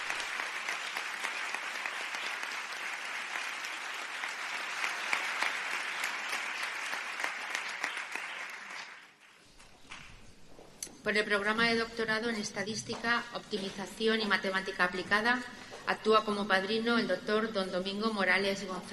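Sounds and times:
crowd applauding: 0.0 - 9.2
speech: 11.1 - 18.9.

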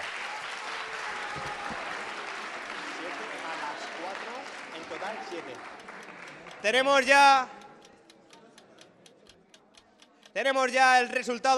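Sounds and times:
audience applause: 0.0 - 6.7
speech: 5.3 - 5.9, 6.6 - 7.6, 10.4 - 11.5.

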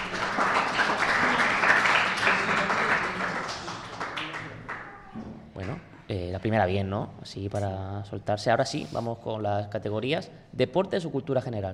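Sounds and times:
applause: 0.0 - 5.8
speech: 6.4 - 11.7.

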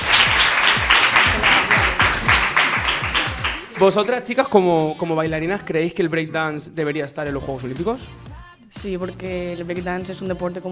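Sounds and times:
audience applause: 0.0 - 4.3
speech: 3.8 - 10.7.

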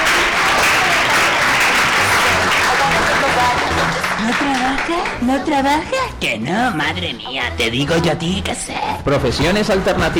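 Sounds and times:
loud applause: 0.0 - 5.3
speech: 4.3 - 10.1.

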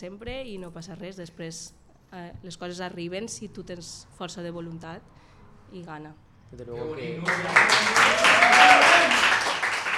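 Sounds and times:
speech: 0.0 - 9.3
live audience clapping: 7.2 - 9.9.

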